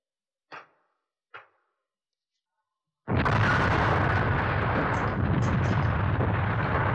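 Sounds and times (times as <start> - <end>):
stone landmine explosion: 3.1 - 6.9.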